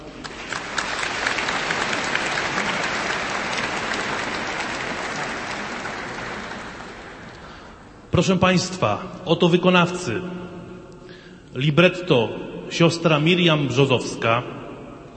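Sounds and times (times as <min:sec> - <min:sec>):
audience applause: 0:00.0 - 0:07.7
speech: 0:08.2 - 0:10.6, 0:11.6 - 0:14.6.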